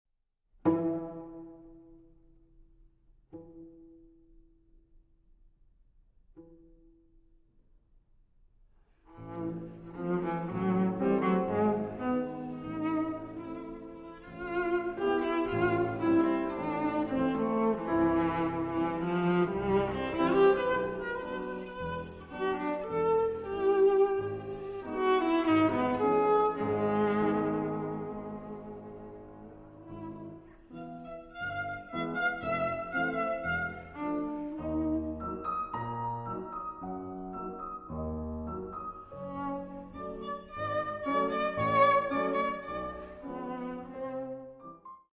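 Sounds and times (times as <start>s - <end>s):
cello piece: 0.6s - 4.9s, 8.8s - 45.1s.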